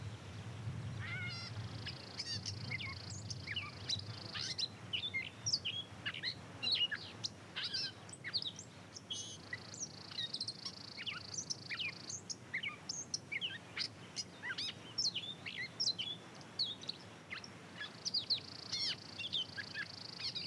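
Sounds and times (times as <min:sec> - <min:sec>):
rumble: 0:00.0 - 0:04.2
birds in Montana: 0:00.0 - 0:20.4.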